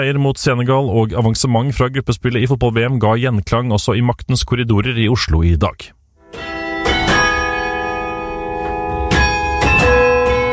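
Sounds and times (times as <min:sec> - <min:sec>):
speech: 0:00.0 - 0:06.5
city hall carillon bells chiming a tune: 0:06.2 - 0:10.5.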